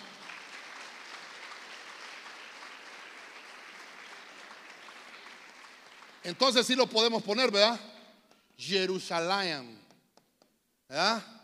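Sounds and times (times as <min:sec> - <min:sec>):
audience clapping loudly: 0:00.0 - 0:07.7
speech: 0:06.2 - 0:07.9, 0:08.6 - 0:09.8, 0:10.9 - 0:11.3.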